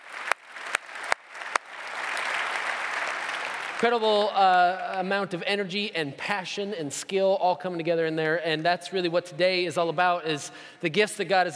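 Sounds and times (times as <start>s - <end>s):
audience applauding: 0.0s - 5.0s
speech: 3.8s - 11.5s.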